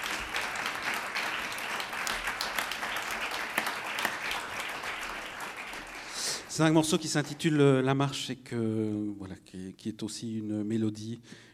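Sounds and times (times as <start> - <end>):
audience applause: 0.0 - 7.1
speech: 6.6 - 11.5.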